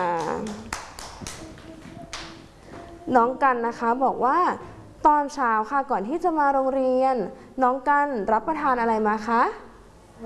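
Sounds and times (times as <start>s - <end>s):
children clapping: 0.0s - 2.6s
speech: 3.1s - 9.6s.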